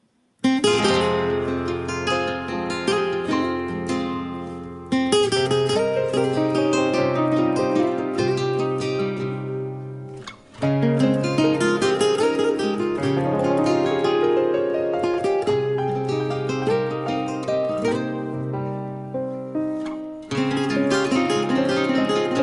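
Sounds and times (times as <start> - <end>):
guitar: 0.0 - 22.4.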